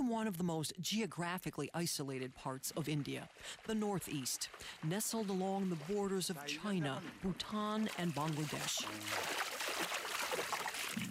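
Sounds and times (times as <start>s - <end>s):
small water splashing ripples: 0.0s - 11.1s
speech: 0.1s - 9.5s
water rushing past a boat crossing the Brahmaputra River in Assam: 2.6s - 11.1s.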